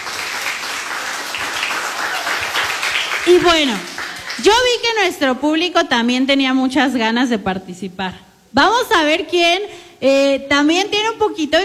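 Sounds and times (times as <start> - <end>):
loud audience applause: 0.0 - 4.6
speech: 3.3 - 11.6.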